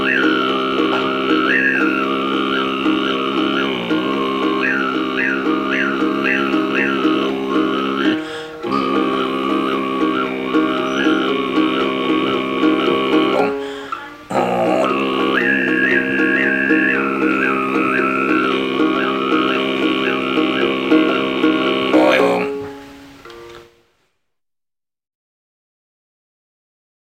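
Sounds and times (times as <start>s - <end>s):
Tuvan chylandyk throat singing: 0.0s - 23.7s.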